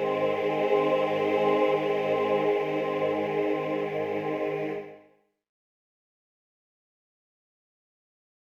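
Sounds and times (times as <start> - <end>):
chorus singing: 0.0 - 5.1.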